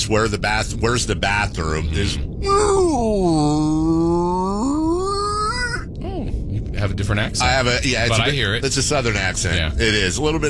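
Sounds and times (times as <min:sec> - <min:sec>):
speech: 0:00.0 - 0:04.0, 0:06.8 - 0:10.4
person imitating a whale call: 0:01.8 - 0:06.3.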